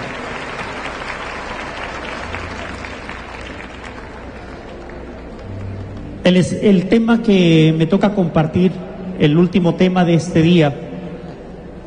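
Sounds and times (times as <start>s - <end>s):
audience applause: 0.0s - 6.1s
speech: 6.3s - 10.9s.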